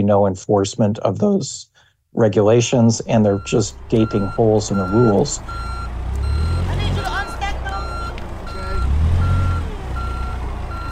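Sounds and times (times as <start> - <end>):
speech: 0.0 - 5.8
forklift reversing beep while shifting pallets: 3.2 - 10.8.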